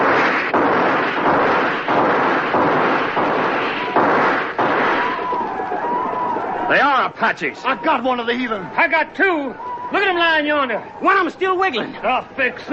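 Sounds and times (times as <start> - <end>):
men firing guns in a battle against attacking Apaches: 0.0 - 6.4
speech: 6.7 - 12.7.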